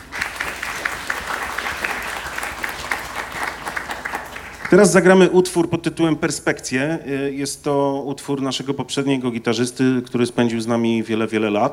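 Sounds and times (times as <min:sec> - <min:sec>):
audience applause: 0:00.0 - 0:05.1
speech: 0:04.7 - 0:11.7.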